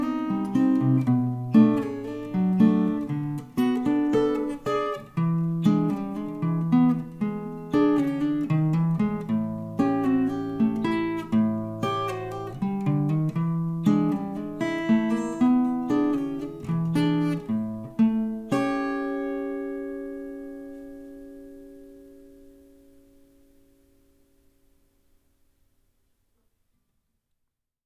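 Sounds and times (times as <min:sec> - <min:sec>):
acoustic tritone blues: 0:00.0 - 0:24.2.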